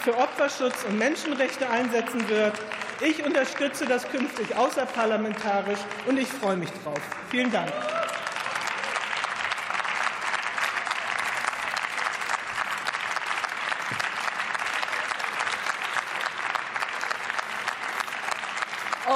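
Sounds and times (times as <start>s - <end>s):
speech: 0.0s - 8.0s
cross-party applause in parliament: 0.0s - 19.1s.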